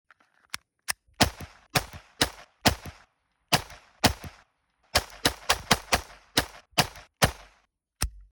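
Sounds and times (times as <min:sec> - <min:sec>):
Glock 44 .22 LR pistol gunshot: 0:01.2 - 0:04.4, 0:05.0 - 0:07.6.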